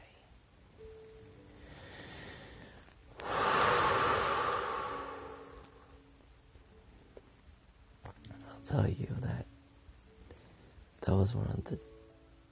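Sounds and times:
person taking a slow deep breath: 1.6 - 5.9
speech: 8.6 - 9.5, 11.2 - 11.9.

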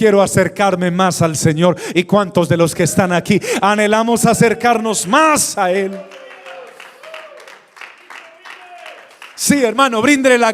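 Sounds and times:
speech: 0.0 - 6.2, 9.4 - 10.5
audience applause: 4.7 - 9.8.

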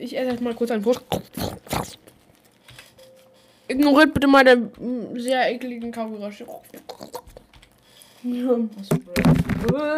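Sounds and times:
speech: 0.0 - 1.6, 3.7 - 7.2, 8.2 - 9.9
microphone knocked over: 9.0 - 9.8.

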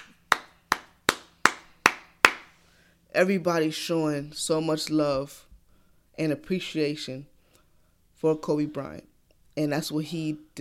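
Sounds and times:
hand clap: 0.0 - 2.6
speech: 3.2 - 5.5, 6.2 - 7.3, 8.2 - 10.5.

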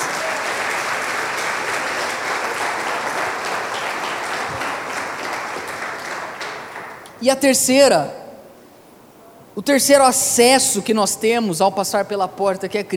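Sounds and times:
large audience applauding: 0.0 - 7.2
speech: 7.2 - 8.2, 9.6 - 12.9.

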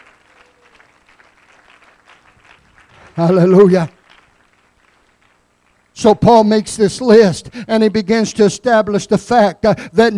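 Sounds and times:
audience hand clapping: 0.0 - 6.0
speech: 3.2 - 4.0, 6.0 - 10.1.

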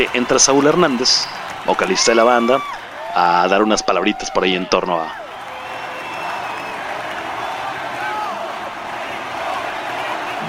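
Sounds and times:
speech: 0.0 - 5.2
large concert crowd applauding and cheering: 0.0 - 10.4
crowd whistles and shouts: 5.0 - 8.4.

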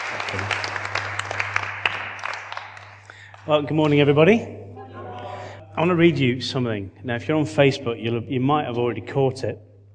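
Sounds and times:
audience applause: 0.0 - 3.7
speech: 3.4 - 4.6, 5.8 - 9.7.

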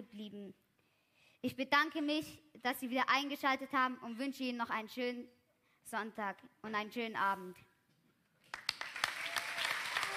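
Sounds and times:
speech: 0.0 - 0.7, 1.4 - 7.7
applause: 8.4 - 10.1.

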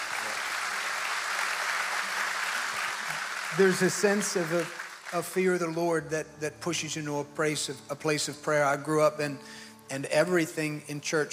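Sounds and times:
crowd clapping: 0.0 - 5.8
speech: 3.5 - 11.3.

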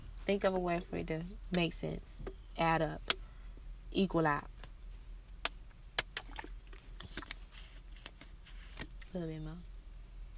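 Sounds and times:
speech: 0.3 - 3.2, 3.9 - 4.6, 9.2 - 9.7
sipping water: 6.0 - 7.3.

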